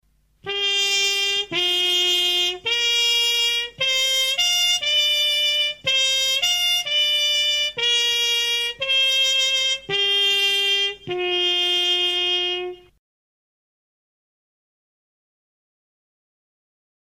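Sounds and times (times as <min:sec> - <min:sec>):
trumpet with or without mute: 0:00.4 - 0:13.0.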